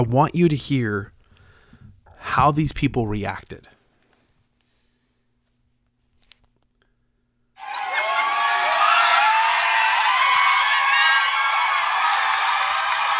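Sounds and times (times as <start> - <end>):
speech: 0.0 - 1.1, 2.2 - 3.8
large crowd cheering: 7.6 - 13.1
scattered clapping: 10.0 - 13.1.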